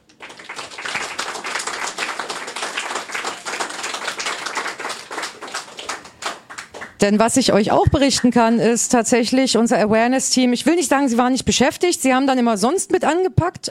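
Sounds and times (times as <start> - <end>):
audience applause at a weekend event: 0.0 - 7.0
speech: 7.0 - 13.6.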